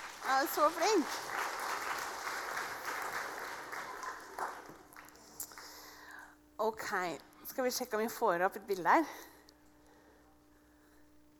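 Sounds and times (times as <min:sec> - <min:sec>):
applause: 0:00.0 - 0:05.9
speech: 0:00.3 - 0:01.4, 0:06.6 - 0:09.3.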